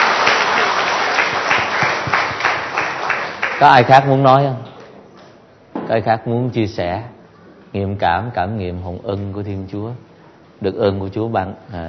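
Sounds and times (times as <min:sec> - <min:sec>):
audience applause: 0:00.0 - 0:04.2
speech: 0:03.6 - 0:04.7, 0:05.9 - 0:11.8.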